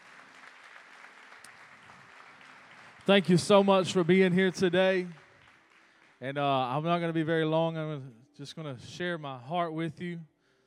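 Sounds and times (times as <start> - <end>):
audience hand clapping: 0.0 - 6.6
speech: 3.1 - 5.2, 6.2 - 10.3.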